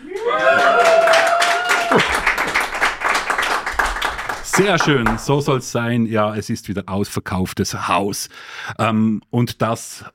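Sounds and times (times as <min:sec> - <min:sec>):
loud sustained whoop: 0:00.0 - 0:02.4
live audience clapping: 0:00.0 - 0:05.8
speech: 0:04.6 - 0:10.1.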